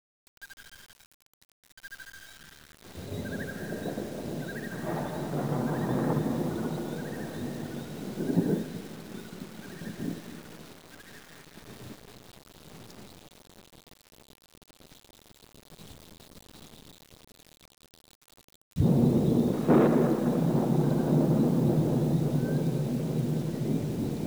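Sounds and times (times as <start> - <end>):
thunder: 2.9 - 10.8, 18.8 - 24.2.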